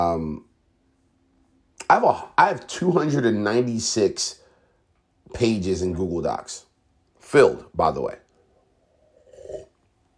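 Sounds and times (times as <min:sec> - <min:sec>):
speech: 0:00.0 - 0:00.5, 0:01.9 - 0:04.4, 0:05.3 - 0:06.7, 0:07.3 - 0:08.2
slurping sip of coffee: 0:09.0 - 0:09.9
faint low gulp: 0:09.1 - 0:09.8.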